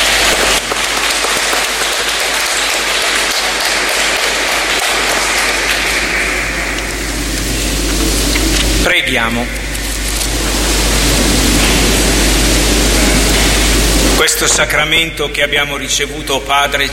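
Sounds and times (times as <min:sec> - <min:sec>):
welcome applause from audience: 0:00.0 - 0:08.8, 0:10.2 - 0:14.2
speech: 0:09.0 - 0:09.6, 0:14.2 - 0:16.9.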